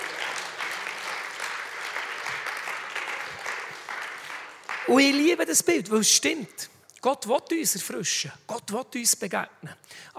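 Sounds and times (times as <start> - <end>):
audience applause: 0.0 - 5.3
speech: 4.9 - 10.1.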